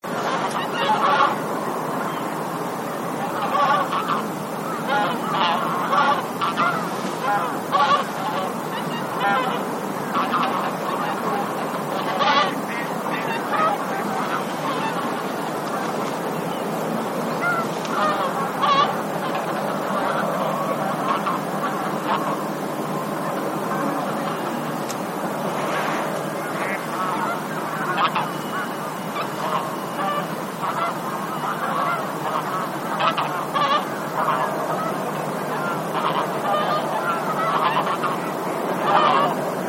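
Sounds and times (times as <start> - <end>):
bean goose flock honking: 0.0 - 39.6.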